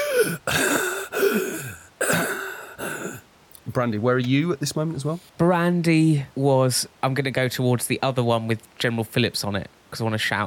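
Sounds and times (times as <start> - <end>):
voice imitating ragged, wretched hacking breaths: 0.0 - 3.2
speech: 3.8 - 10.4.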